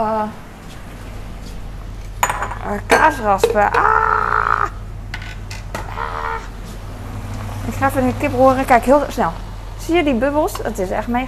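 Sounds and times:
speech: 0:00.0 - 0:00.5, 0:02.6 - 0:04.2, 0:07.7 - 0:11.2
low steady hum: 0:00.0 - 0:11.2
dishes clinking as a bowl is taken out: 0:02.2 - 0:03.8.

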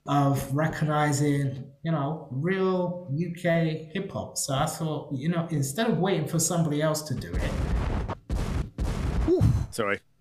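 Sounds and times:
speech: 0:00.1 - 0:08.0, 0:09.8 - 0:10.1
bomb explosion sound effect: 0:07.3 - 0:09.8.

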